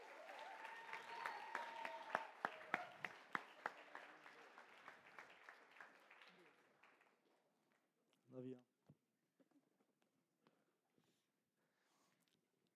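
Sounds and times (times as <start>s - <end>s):
audience applause: 0.0s - 7.1s
speech: 8.4s - 8.7s.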